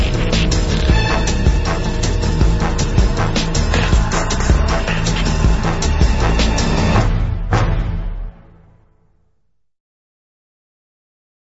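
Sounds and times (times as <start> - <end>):
instrumental music: 0.0 - 8.9.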